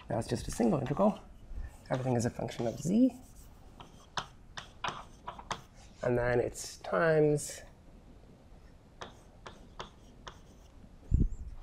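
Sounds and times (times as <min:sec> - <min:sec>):
speech: 0:00.1 - 0:01.3, 0:01.9 - 0:03.3, 0:06.0 - 0:07.7
chalk or pen scratching on a board: 0:00.5 - 0:06.1, 0:09.0 - 0:10.7.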